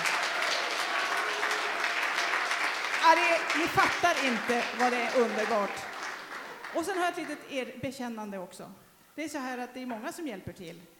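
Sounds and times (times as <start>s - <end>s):
crowd clapping: 0.0s - 7.6s
speech: 3.0s - 5.9s, 6.7s - 10.9s.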